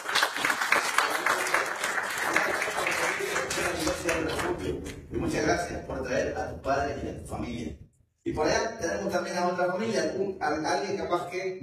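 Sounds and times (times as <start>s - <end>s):
church audience applauding: 0.0s - 4.8s
speech: 5.2s - 11.6s.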